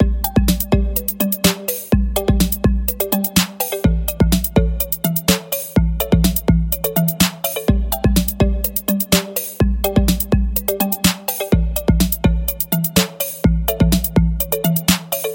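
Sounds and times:
game music: 0.0s - 15.3s.

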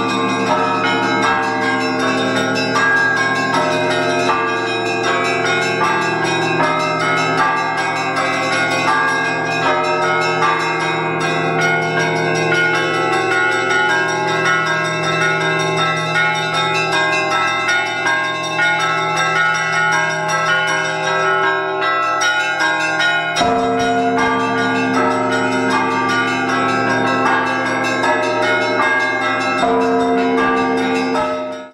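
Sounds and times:
Easter bells ringing: 0.0s - 31.7s.

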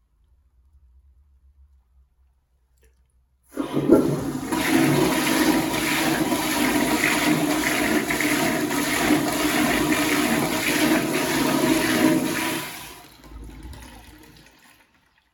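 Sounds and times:
toilet flushing: 3.5s - 15.3s.

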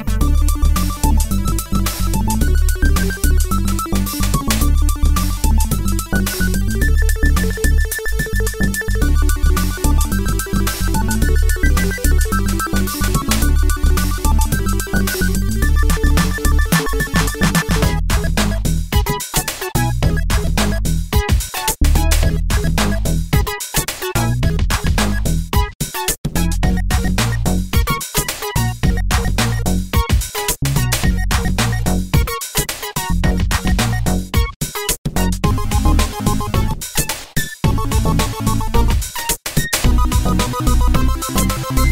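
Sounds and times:
8-bit chiptune music: 0.0s - 25.7s, 26.4s - 34.5s, 35.2s - 41.8s.

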